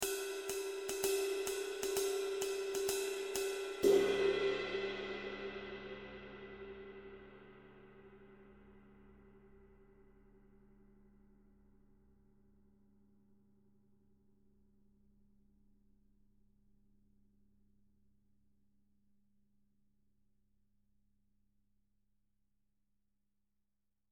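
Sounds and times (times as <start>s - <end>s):
Zildjian cymbal: 0.0s - 11.3s.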